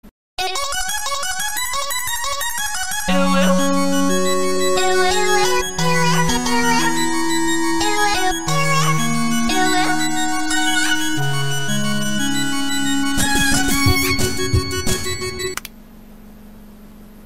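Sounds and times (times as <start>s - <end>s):
game theme music: 0.6s - 15.6s.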